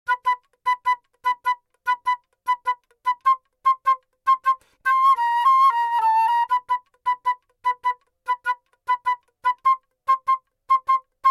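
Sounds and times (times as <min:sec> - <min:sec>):
flute: 0:00.1 - 0:11.2.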